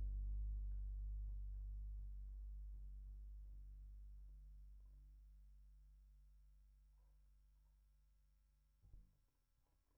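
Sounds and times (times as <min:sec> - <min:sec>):
bass guitar recorded by direct input: 0:00.0 - 0:05.4.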